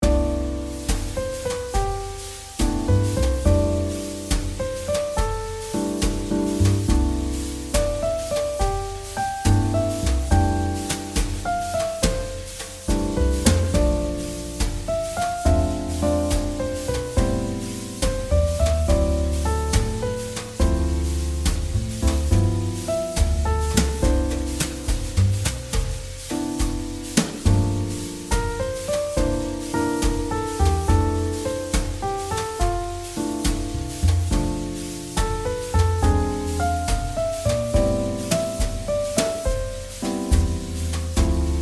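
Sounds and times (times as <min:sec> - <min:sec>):
jazz ballad: 0:00.0 - 0:41.5.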